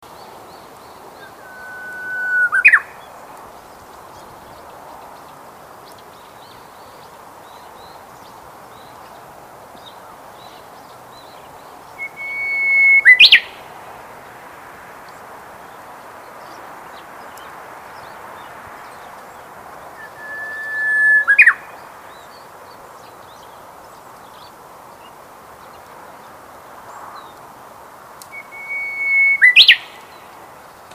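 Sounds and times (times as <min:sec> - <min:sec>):
uguisu: 0:00.0 - 0:30.9.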